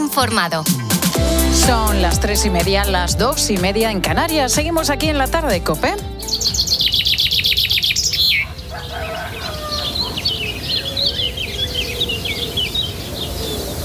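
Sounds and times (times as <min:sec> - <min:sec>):
speech: 0:00.0 - 0:06.8
small birds chirping in a village: 0:06.2 - 0:13.8.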